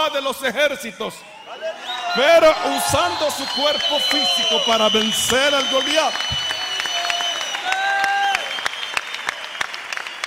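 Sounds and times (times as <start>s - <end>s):
speech: 0.1s - 6.5s
audience clapping: 2.2s - 10.2s.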